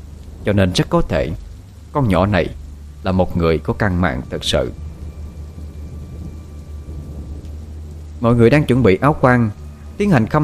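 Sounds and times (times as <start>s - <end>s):
thunder: 0.0s - 8.7s
heavy rain: 0.0s - 10.4s
speech: 0.4s - 4.8s, 8.2s - 10.4s.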